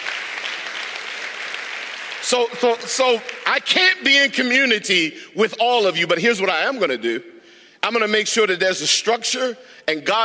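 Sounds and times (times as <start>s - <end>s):
crowd applauding: 0.0s - 3.8s
speech: 2.3s - 10.2s.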